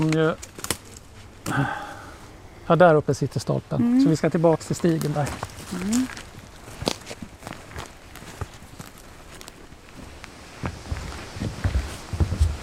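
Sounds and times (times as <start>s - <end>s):
speech: 0.0s - 0.6s, 1.5s - 1.8s, 2.7s - 6.2s
footsteps crunching on the old-growth forest trail in Tyresta National Park: 4.8s - 12.6s.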